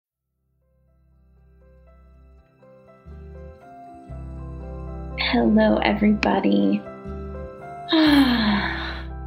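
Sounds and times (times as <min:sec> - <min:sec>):
speech: 0:05.3 - 0:06.9, 0:07.9 - 0:08.4
deep breath: 0:07.9 - 0:09.2.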